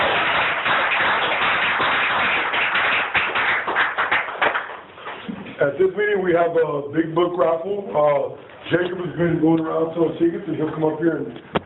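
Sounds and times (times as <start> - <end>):
audience applause: 0.0 - 4.9
speech: 5.6 - 11.6.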